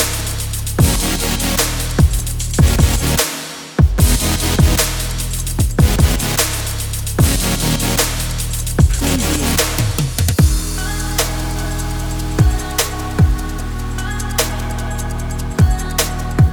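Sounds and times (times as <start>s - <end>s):
modern future bass music: 0.0s - 3.4s, 4.0s - 16.5s.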